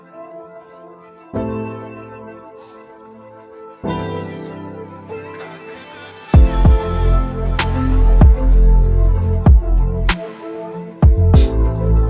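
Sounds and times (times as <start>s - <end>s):
karaoke instrumental backing track: 4.0s - 12.0s.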